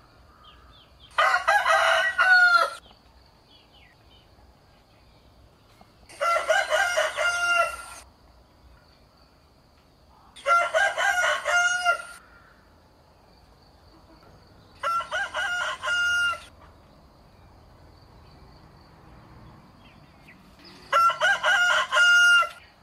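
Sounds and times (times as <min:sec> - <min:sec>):
rooster crowing: 0:01.1 - 0:02.8, 0:06.1 - 0:08.0, 0:10.4 - 0:12.2, 0:14.8 - 0:16.5, 0:20.8 - 0:22.6.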